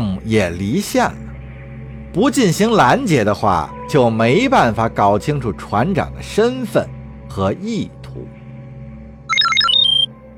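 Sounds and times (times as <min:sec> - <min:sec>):
speech: 0:00.3 - 0:01.2, 0:02.1 - 0:08.4
telephone ringing: 0:09.3 - 0:10.1.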